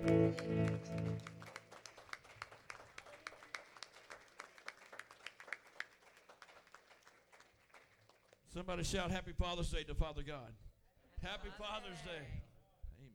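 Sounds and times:
speech: 0.0 - 1.4, 8.5 - 12.4
audience hand clapping: 0.0 - 8.5.

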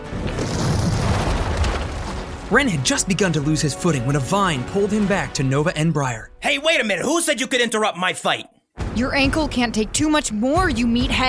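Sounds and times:
stomp making the ground quake and break: 0.0 - 3.2
crackling debris: 0.0 - 5.0
speech: 2.5 - 11.2.

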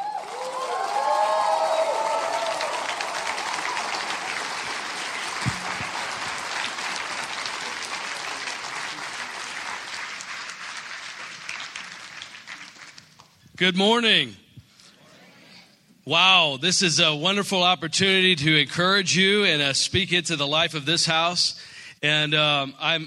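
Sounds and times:
church congregation applauding and cheering a guest speaker: 0.0 - 13.4
speech: 13.6 - 14.4, 16.1 - 23.0.

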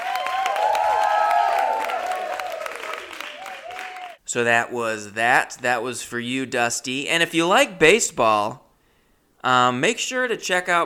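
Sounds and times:
applause sound effect: 0.0 - 4.2
speech: 4.3 - 8.6, 9.4 - 10.8.

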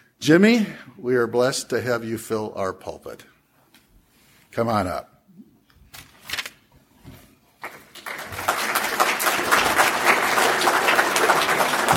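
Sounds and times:
speech: 0.2 - 3.3, 4.5 - 5.1
audience clapping: 7.6 - 11.9.

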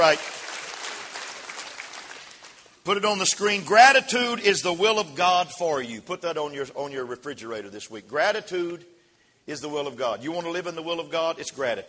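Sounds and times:
speech: 0.0 - 0.4, 2.8 - 11.8
audience cheering and applauding: 0.0 - 2.7.

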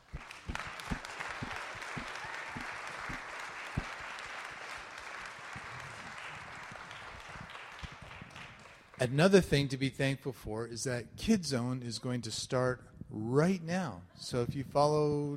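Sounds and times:
audience applause: 0.0 - 9.1
speech: 9.0 - 15.3.

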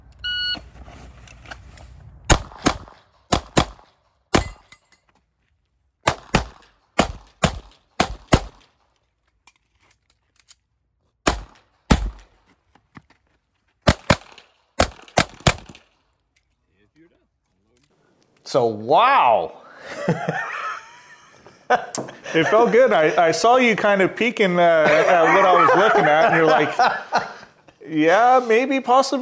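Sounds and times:
shot timer beep: 0.2 - 0.6
SIG Sauer P320 pistol firing on a competition shooting stage: 2.3 - 4.8, 6.0 - 8.7, 11.3 - 12.4, 13.9 - 15.9
speech: 18.5 - 20.4, 21.7 - 27.1, 27.9 - 29.2
laughter: 19.7 - 27.9.

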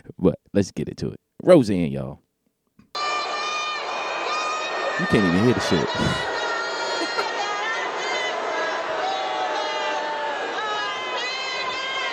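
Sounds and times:
speech: 0.2 - 2.2, 5.0 - 6.3
large crowd booing: 3.0 - 12.1.

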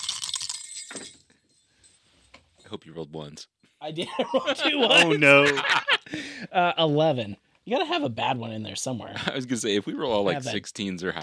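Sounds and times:
jingling bells: 0.1 - 2.9
speech: 2.7 - 11.2
laughter: 3.9 - 6.5.

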